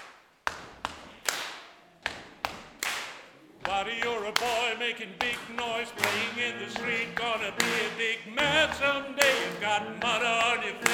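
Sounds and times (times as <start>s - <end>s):
clapping: 0.0s - 10.9s
stamping feet: 3.6s - 10.9s
speech: 3.7s - 10.9s.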